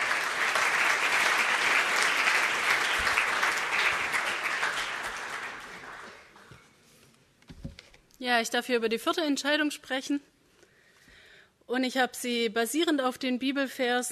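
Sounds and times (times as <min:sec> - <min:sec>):
audience applause: 0:00.0 - 0:06.5
speech: 0:08.2 - 0:10.3, 0:11.7 - 0:14.1.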